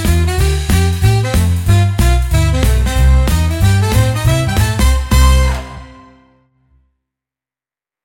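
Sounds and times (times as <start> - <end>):
big band swing music: 0.0 - 6.2.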